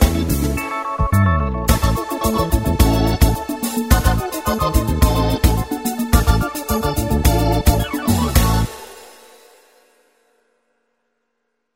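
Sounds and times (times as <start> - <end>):
organ samba: 0.0 - 9.2.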